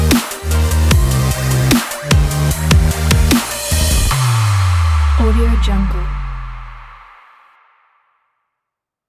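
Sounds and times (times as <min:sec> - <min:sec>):
dubstep beat logo intro: 0:00.0 - 0:07.2.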